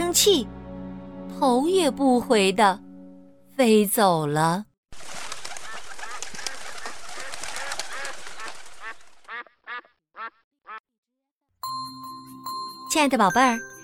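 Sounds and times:
speech: 0.1 - 0.6, 1.4 - 2.8, 3.6 - 4.7, 12.9 - 13.7
flock of ducks quacking: 5.6 - 10.8.

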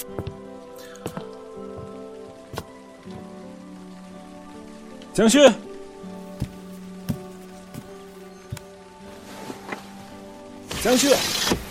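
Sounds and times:
rain falling: 0.0 - 11.6
speech: 5.2 - 5.7, 10.9 - 11.6.

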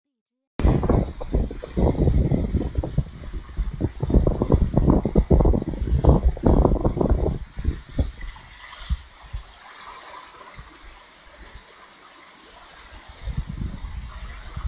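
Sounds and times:
mountain stream water before dawn: 0.6 - 14.6.

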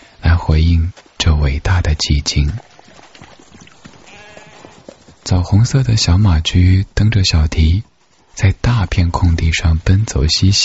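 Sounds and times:
speech: 0.5 - 2.7, 5.2 - 10.6
sheep bleating: 4.0 - 4.9.

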